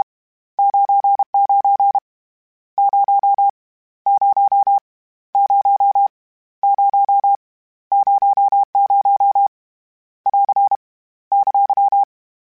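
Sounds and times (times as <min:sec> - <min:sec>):
Morse code CW code groups: 0:00.6 - 0:02.0, 0:02.8 - 0:03.5, 0:05.4 - 0:09.5, 0:10.3 - 0:12.1.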